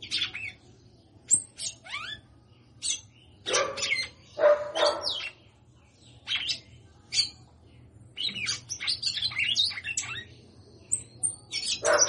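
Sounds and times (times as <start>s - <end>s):
female red-cowled cardinal singing: 0.0s - 12.0s.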